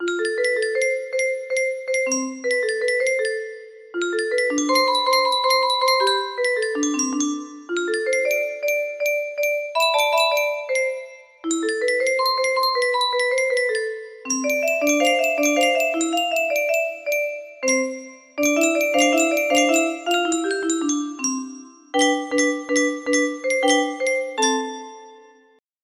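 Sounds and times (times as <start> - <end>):
music box melody: 0.0 - 25.6.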